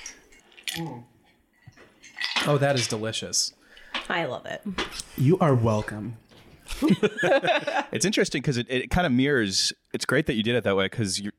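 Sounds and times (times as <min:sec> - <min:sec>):
glasses clinking in a toast: 0:00.0 - 0:03.0
speech: 0:00.7 - 0:01.1, 0:02.4 - 0:11.3
laughter: 0:06.7 - 0:08.2.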